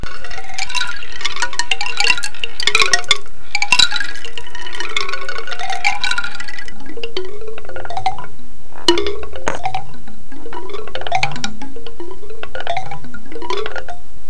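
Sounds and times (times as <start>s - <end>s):
wooden drum: 0.0s - 14.2s.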